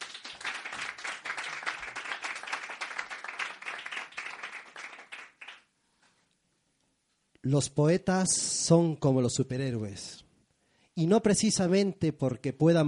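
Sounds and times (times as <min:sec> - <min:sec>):
audience applause: 0:00.0 - 0:05.6
speech: 0:07.4 - 0:10.2, 0:11.0 - 0:12.8.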